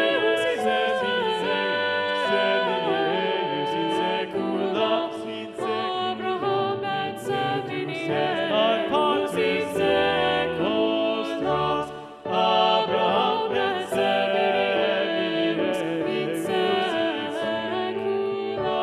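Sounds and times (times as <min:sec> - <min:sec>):
SATB choir singing with soprano part muted: 0:00.0 - 0:18.8.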